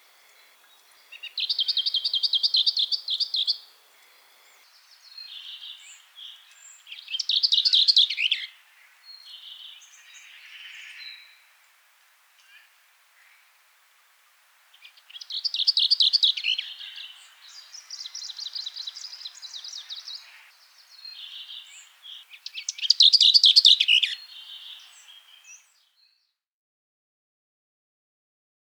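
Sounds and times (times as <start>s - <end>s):
warbler singing: 0.0s - 11.4s, 14.7s - 25.8s.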